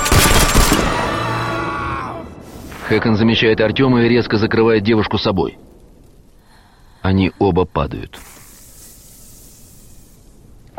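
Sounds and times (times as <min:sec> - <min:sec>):
assault rifle gunfire: 0:00.0 - 0:01.0
speech: 0:02.9 - 0:05.7, 0:07.0 - 0:08.3.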